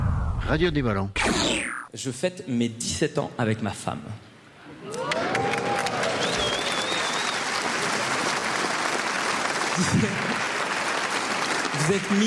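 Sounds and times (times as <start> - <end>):
speech: 0.5 - 5.0, 9.8 - 10.3, 11.8 - 12.2
live audience applause: 4.8 - 12.2
audience whoops and cheers: 4.9 - 7.5.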